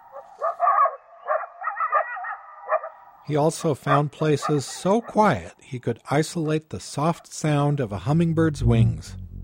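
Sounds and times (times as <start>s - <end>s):
coyote chorus in an eastern Washington canyon: 0.0s - 3.1s, 3.8s - 5.3s
speech: 3.3s - 9.2s.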